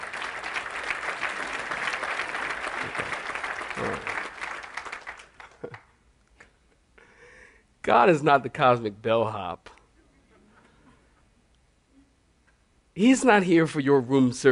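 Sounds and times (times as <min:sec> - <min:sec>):
audience clapping: 0:00.0 - 0:06.0
speech: 0:07.9 - 0:09.7, 0:13.0 - 0:14.5.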